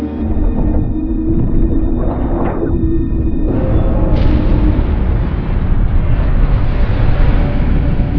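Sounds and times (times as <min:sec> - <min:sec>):
broken ambience: 0:00.2 - 0:08.1.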